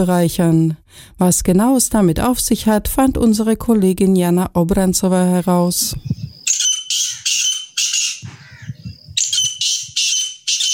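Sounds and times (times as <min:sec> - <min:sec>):
speech: 0:00.0 - 0:06.2
grey partridges giving harsh rasping calls: 0:06.1 - 0:10.7.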